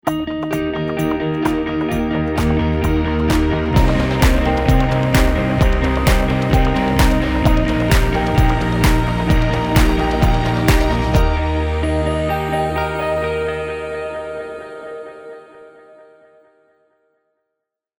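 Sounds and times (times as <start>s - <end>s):
jingle: 1.0s - 14.5s.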